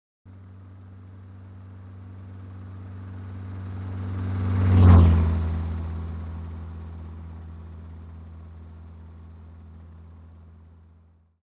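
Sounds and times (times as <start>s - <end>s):
car passing from left to right: 1.6s - 7.6s.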